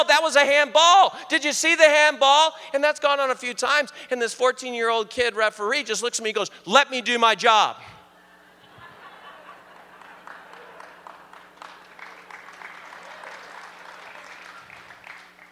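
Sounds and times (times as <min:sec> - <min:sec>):
speech: 0:00.0 - 0:08.0
laughter: 0:08.2 - 0:15.0
audience clapping: 0:09.6 - 0:15.4.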